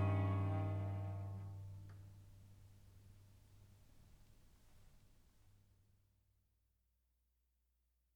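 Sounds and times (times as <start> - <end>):
cello duo playing: 0.0 - 1.8.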